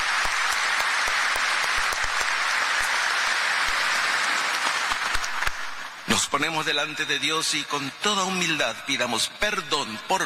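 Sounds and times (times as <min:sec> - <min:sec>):
audience applause: 0:00.0 - 0:06.4
speech: 0:06.3 - 0:10.2.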